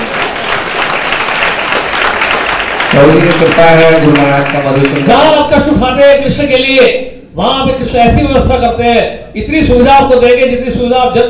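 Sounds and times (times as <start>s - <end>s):
audience clapping loudly at a Krishna devotional talk: 0.0s - 5.5s
speech: 3.0s - 11.2s.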